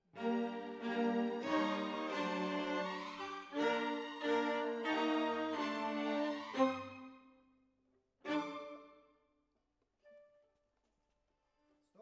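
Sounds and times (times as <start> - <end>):
violas: 0.1 - 7.3, 8.2 - 9.0.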